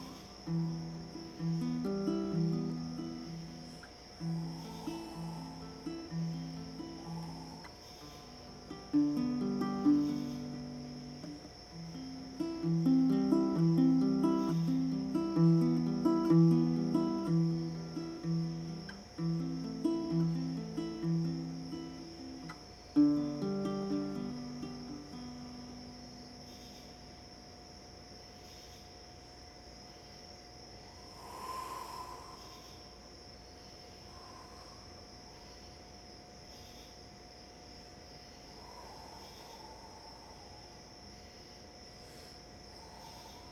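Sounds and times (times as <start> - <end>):
low sustained sung or bowed tones: 0.0 - 26.6
crickets chirring: 0.0 - 43.5
faint hum: 0.0 - 43.5.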